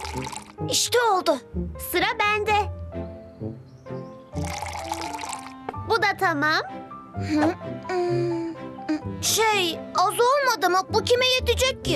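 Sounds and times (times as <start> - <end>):
squeezed lemon juice poured into a jug: 0.0 - 0.6, 4.4 - 5.6
speech: 0.1 - 2.8, 6.2 - 11.9.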